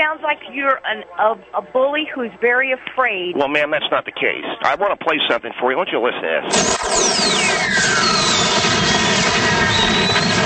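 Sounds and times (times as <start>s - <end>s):
speech: 0.1s - 8.2s
fireworks launching like a rocket: 6.5s - 10.4s
descending whistling tones: 6.6s - 10.4s.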